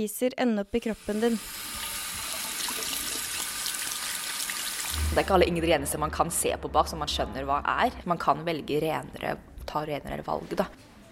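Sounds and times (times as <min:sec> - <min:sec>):
speech: 0:00.0 - 0:01.8, 0:05.1 - 0:11.1
water running while shampoo is rinsed off: 0:00.7 - 0:07.4.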